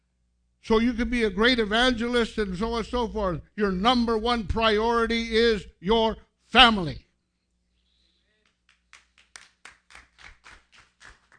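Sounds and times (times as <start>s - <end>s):
speech: 0.6s - 7.0s
scattered hand claps from a small group: 8.4s - 11.3s.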